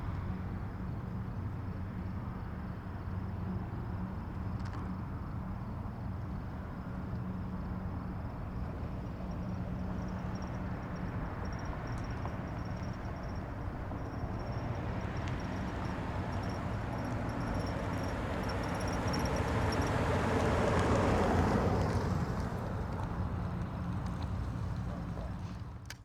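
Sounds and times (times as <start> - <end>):
distant morning highway traffic: 0.0 - 26.0.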